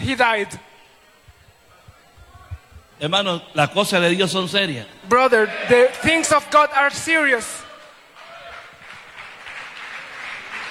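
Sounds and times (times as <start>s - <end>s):
speech: 0.1s - 0.7s, 3.0s - 7.6s
audience applauding during a preacher's sermon: 7.8s - 10.6s.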